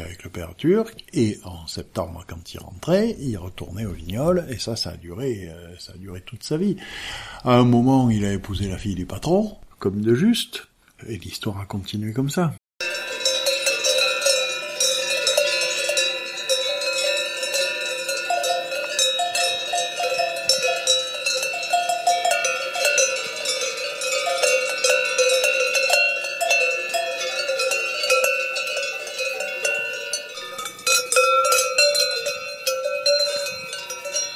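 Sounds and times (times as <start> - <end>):
speech: 0.0 - 12.6
many cowbells clanging: 12.8 - 34.3.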